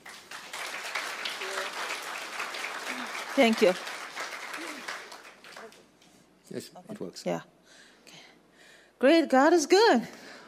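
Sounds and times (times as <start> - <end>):
audience applause: 0.0 - 5.9
speech: 3.4 - 3.9, 6.5 - 7.6, 9.0 - 10.2.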